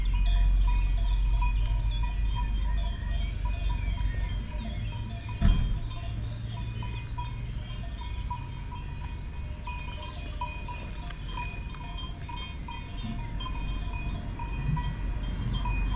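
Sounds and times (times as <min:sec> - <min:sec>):
cars passing in Erce Ariege France: 0:00.0 - 0:15.9
sheep bells in Erce Ariege France: 0:00.0 - 0:15.9.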